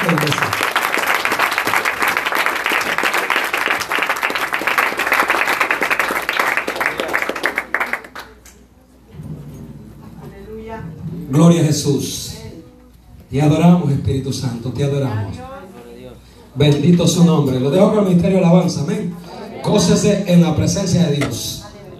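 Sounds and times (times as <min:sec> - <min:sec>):
audience applause: 0:00.0 - 0:08.4
speech: 0:00.1 - 0:00.5, 0:11.7 - 0:12.2, 0:13.3 - 0:15.4, 0:16.6 - 0:19.1, 0:19.7 - 0:21.6.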